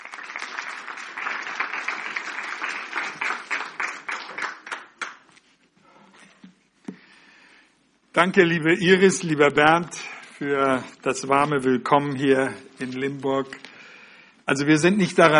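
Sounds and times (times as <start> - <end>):
audience applause: 0.0 - 5.3
speech: 8.2 - 13.6, 14.5 - 15.3.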